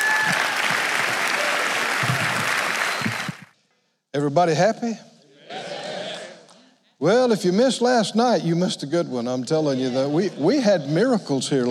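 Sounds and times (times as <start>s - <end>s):
audience hand clapping: 0.0s - 3.6s
speech: 4.2s - 5.1s, 7.0s - 11.6s.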